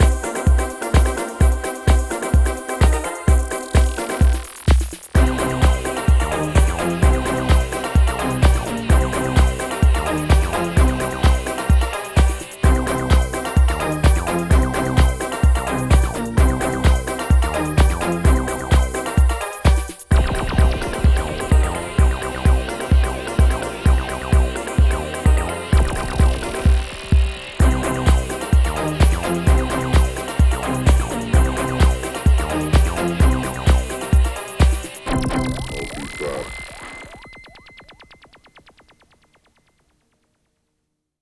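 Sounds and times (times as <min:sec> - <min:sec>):
techno intro: 0:00.0 - 0:39.6.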